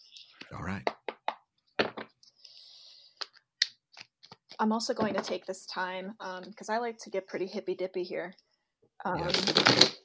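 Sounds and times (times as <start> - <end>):
speech: 0.5 - 1.0, 4.6 - 10.0
tarot cards shuffling: 9.2 - 10.0.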